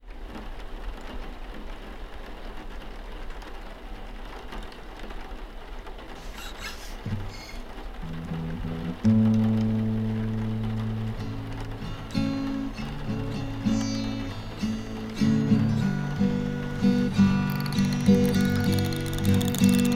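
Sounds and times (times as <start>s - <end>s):
soundscape: 7.1s - 19.9s.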